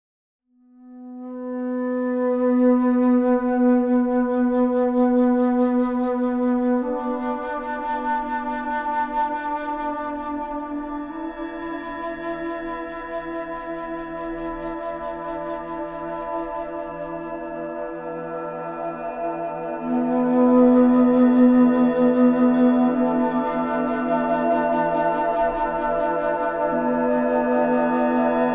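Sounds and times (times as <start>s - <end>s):
333 Hz tone: 0.6s - 28.5s.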